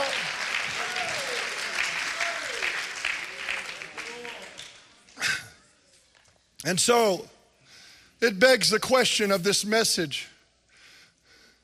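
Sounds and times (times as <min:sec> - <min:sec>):
audience clapping hands: 0:00.0 - 0:05.4
speech: 0:06.6 - 0:07.4, 0:08.2 - 0:10.3.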